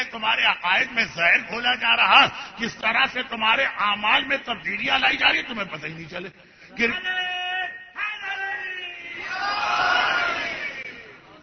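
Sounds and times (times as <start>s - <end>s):
speech: 0.0s - 7.3s
crowd's weak chanted reply to a religious slogan: 9.2s - 11.0s.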